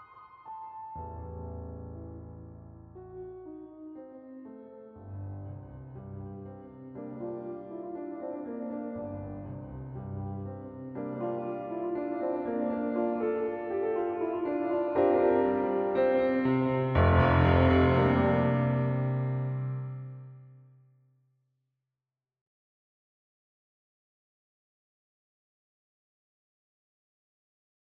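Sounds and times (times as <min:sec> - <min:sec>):
mini grand piano with 480L echo plate reverb: 0:00.0 - 0:20.6.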